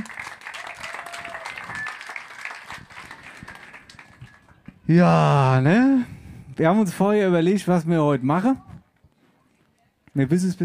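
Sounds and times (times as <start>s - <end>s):
crowd applauding: 0.0s - 5.0s
whistles: 1.5s - 2.2s
speech: 4.9s - 8.7s, 10.2s - 10.6s.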